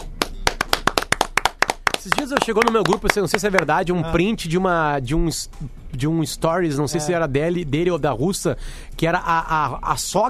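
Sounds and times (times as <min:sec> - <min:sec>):
applause: 0:00.0 - 0:03.7
speech: 0:02.0 - 0:10.2.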